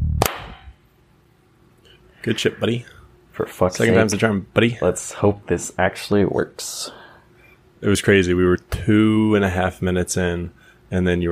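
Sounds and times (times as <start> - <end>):
hand clap: 0.2 - 0.7
speech: 2.2 - 7.0, 7.8 - 11.2.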